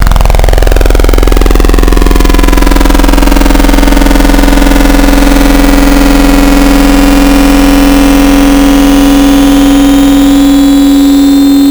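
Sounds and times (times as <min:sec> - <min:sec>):
distorted FM wavetable synthesizer: 0:00.0 - 0:11.6.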